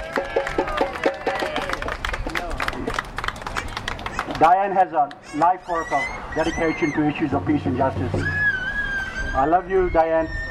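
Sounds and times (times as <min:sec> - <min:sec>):
applause: 0:00.0 - 0:05.2
speech: 0:04.4 - 0:08.4, 0:09.4 - 0:10.4.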